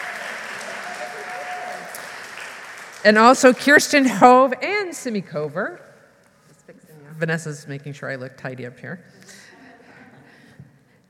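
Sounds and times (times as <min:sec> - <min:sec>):
whoops: 0:00.0 - 0:02.0
room full of people applauding: 0:00.0 - 0:03.7
speech: 0:03.0 - 0:05.9, 0:07.2 - 0:09.4.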